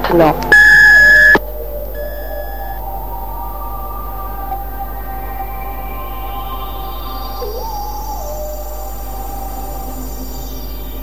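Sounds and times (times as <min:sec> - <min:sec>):
beep tone signal or alarm: 0:00.5 - 0:02.8.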